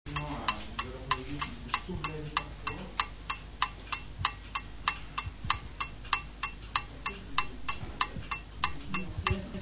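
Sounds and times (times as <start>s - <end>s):
clock ticking: 0.1s - 9.5s.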